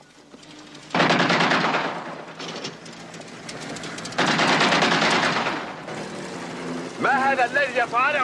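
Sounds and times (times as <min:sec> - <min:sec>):
gunshots, warning shots: 0:00.9 - 0:02.8, 0:04.2 - 0:06.0
speech: 0:07.3 - 0:08.2.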